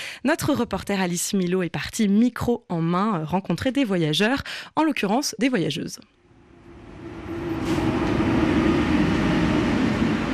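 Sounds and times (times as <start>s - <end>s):
speech: 0.2s - 6.2s
underground commuter rail platform ambience on the Paris RER B line: 6.2s - 10.3s.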